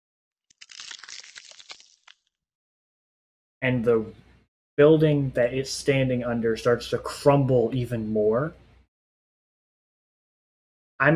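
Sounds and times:
ice crackling: 0.5 - 2.3
speech: 3.6 - 4.2, 4.8 - 8.6, 11.0 - 11.1.

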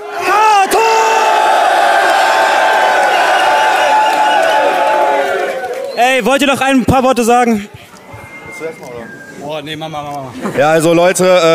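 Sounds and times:
crowd cheering and yelling: 0.0 - 7.2
speech: 6.2 - 7.8, 8.6 - 11.5.

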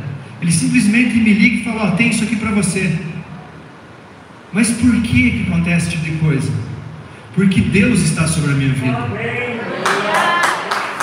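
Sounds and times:
speech: 0.4 - 3.1, 4.5 - 6.7, 7.4 - 9.6
audience clapping: 9.8 - 11.0.

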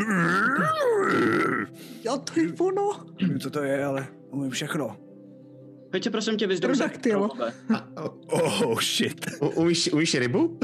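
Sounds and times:
person growling a mock dinosaur roar: 0.0 - 1.7
speech: 1.1 - 5.0, 5.9 - 10.6.

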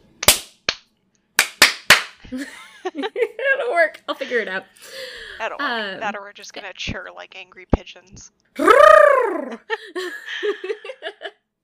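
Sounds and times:
loud sharp hand claps: 0.2 - 2.3
laughter: 2.3 - 5.3, 8.6 - 11.4
speech: 2.3 - 11.3.

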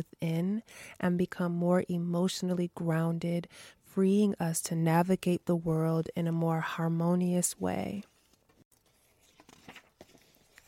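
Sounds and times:
speech: 0.0 - 8.1
book pages turning: 8.0 - 10.6.

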